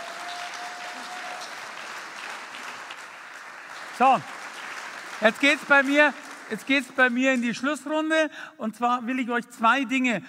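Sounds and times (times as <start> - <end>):
audience applause: 0.0 - 7.4
speech: 4.0 - 4.4, 5.2 - 10.2.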